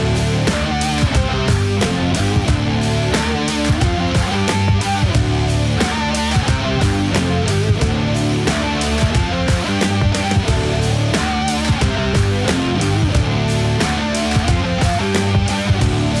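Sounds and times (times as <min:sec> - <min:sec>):
fuzz distortion: 0:00.0 - 0:16.1.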